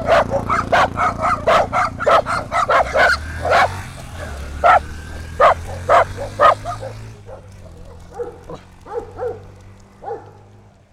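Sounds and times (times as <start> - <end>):
domestic dog barking: 0.0 - 10.5.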